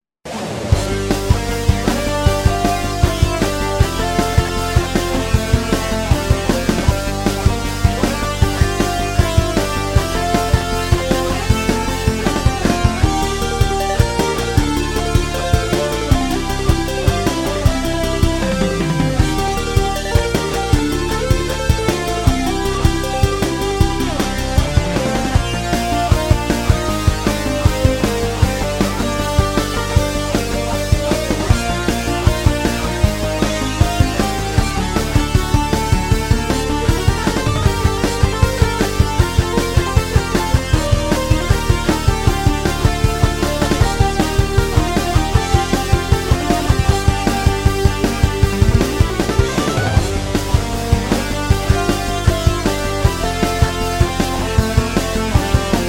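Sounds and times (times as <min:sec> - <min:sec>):
rock music: 0:00.2 - 0:55.8.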